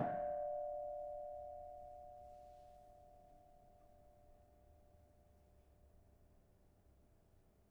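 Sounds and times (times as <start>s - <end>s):
soft kenong in a gamelan: 0.0s - 4.3s.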